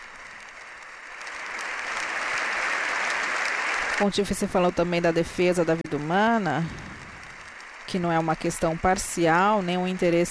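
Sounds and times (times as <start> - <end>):
sustained applause from a large crowd: 0.0 - 10.3
speech: 4.0 - 6.9, 7.9 - 10.3.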